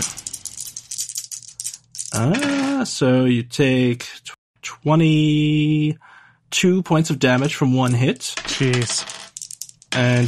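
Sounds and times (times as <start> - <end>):
damage dice rolling: 0.0 - 2.9, 7.3 - 10.2
speech: 2.2 - 4.2, 4.8 - 9.1, 9.9 - 10.2.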